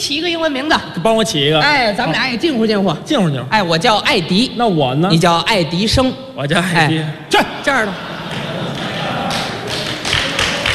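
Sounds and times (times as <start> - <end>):
speech: 0.0 - 8.1
laughter: 7.5 - 10.7
audience applause: 8.2 - 10.7.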